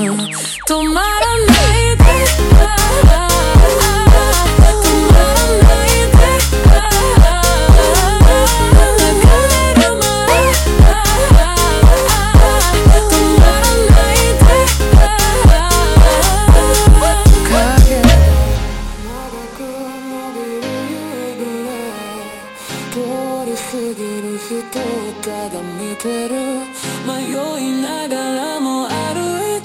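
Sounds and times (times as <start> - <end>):
super slowed montagem music: 0.2 - 20.6.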